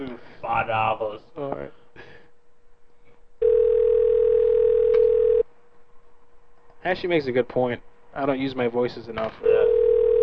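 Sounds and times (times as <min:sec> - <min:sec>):
speech: 0:00.0 - 0:01.8, 0:06.8 - 0:09.6
phone call dial tone: 0:03.4 - 0:05.4, 0:09.5 - 0:10.2.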